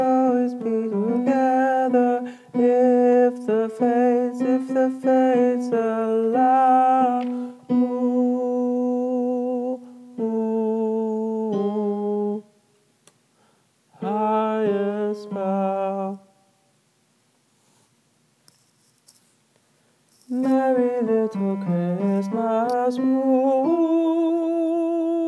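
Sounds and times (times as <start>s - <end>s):
tenor singing: 0.0s - 12.6s, 13.9s - 16.5s, 20.2s - 25.2s.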